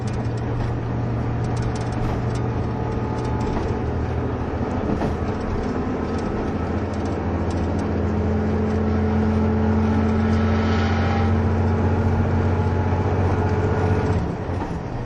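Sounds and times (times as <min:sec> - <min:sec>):
KiHa 71 series diesel train Yufuin no Mori rumbling: 0:00.0 - 0:15.0.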